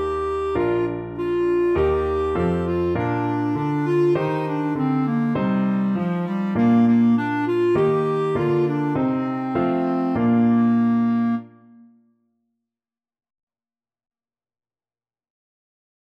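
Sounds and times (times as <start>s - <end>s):
clarinet folk tune: 0.0s - 12.0s.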